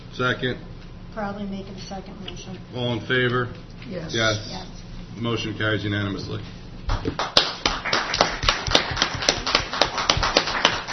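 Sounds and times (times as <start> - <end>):
speech: 0.2 - 7.4
applause: 6.9 - 10.9.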